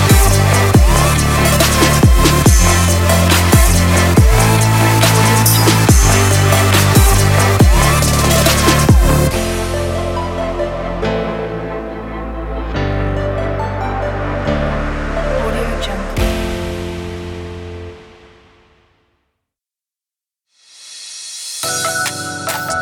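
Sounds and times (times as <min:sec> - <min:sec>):
future bass music: 0:00.0 - 0:17.7.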